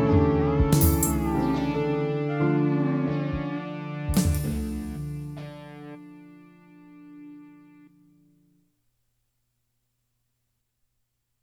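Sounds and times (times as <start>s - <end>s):
instrumental music: 0.0s - 8.4s.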